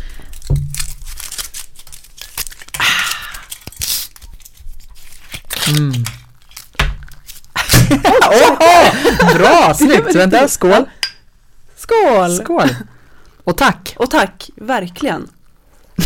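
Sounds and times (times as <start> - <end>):
foil tearing and crinkling on small bottles of alcohol-free sparkling wine: 0.0 - 7.8
speech: 5.7 - 6.2, 8.0 - 11.0, 11.9 - 12.9, 13.5 - 15.4
laughter: 7.6 - 10.3.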